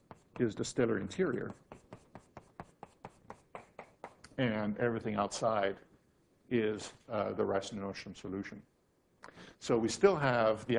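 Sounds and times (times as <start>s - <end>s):
drawing strokes on a board during a physics lecture: 0.0s - 4.2s
speech: 0.4s - 1.8s, 4.4s - 5.9s, 6.5s - 8.7s, 9.6s - 10.7s.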